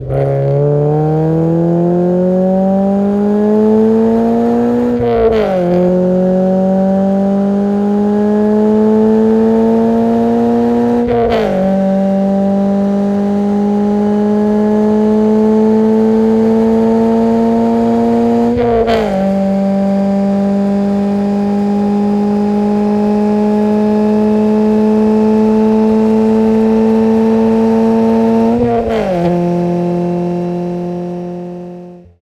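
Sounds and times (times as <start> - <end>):
exhaust sound: 0.0 - 32.1.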